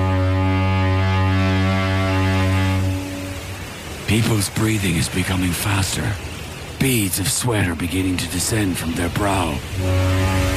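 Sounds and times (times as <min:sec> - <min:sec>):
ferry horn blast: 0:00.0 - 0:03.8, 0:09.7 - 0:10.5
speech: 0:04.1 - 0:10.5.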